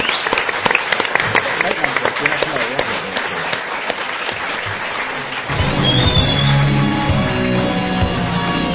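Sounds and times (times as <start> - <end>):
audience applause: 0.0 - 7.8.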